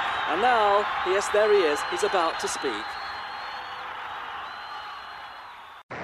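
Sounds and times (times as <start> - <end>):
crowd clapping and cheering: 0.0 - 5.9
speech: 0.3 - 3.0.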